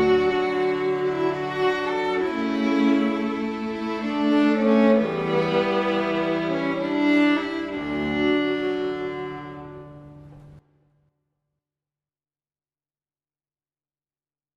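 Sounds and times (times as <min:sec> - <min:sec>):
string quartet playing a hymn: 0:00.0 - 0:10.6.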